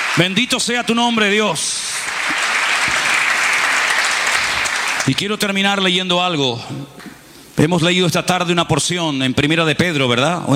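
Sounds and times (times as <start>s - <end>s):
applause: 0.0s - 5.2s
speech: 0.2s - 2.6s, 5.0s - 10.5s.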